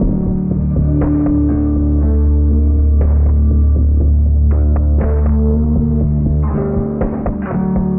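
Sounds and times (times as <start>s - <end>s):
sad guitar music: 0.0s - 7.9s.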